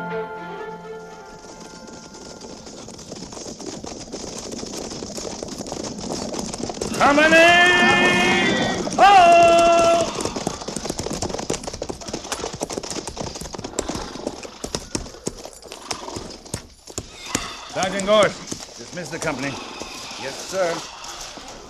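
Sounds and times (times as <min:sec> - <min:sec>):
horses' hooves clip-clopping while riding: 0:00.9 - 0:21.6
speech: 0:07.0 - 0:07.8, 0:18.1 - 0:18.4, 0:19.0 - 0:20.9.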